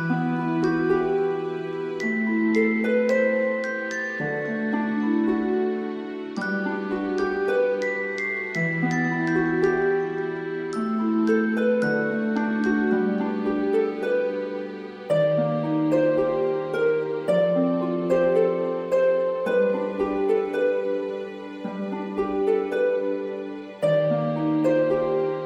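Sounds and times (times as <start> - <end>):
healing music: 0.0 - 25.4.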